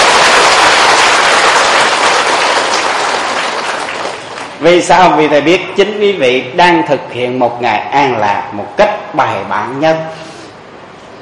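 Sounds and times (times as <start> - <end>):
large crowd clapping: 0.0 - 4.6
speech: 4.6 - 10.3.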